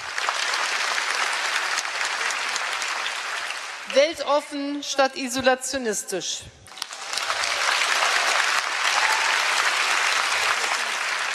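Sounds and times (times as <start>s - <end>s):
audience applause after a speech: 0.0s - 4.0s, 6.7s - 11.3s
speech: 3.9s - 6.6s.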